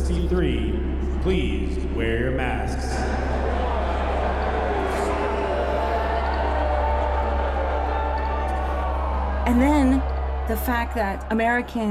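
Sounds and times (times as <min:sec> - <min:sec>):
speech: 0:00.3 - 0:03.2, 0:09.5 - 0:11.8
large crowd booing: 0:02.9 - 0:11.8.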